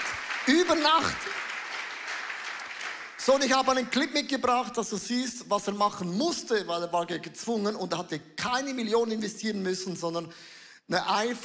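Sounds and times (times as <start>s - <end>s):
audience applause: 0.0s - 3.6s
speech: 0.5s - 1.4s, 3.2s - 11.4s.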